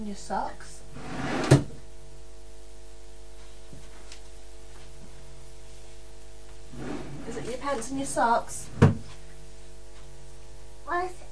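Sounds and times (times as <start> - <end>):
speech: 0.0 - 1.2, 7.6 - 8.8, 10.9 - 11.3
electrical hum: 0.0 - 11.3
drawer being opened: 1.0 - 1.8, 6.7 - 7.6.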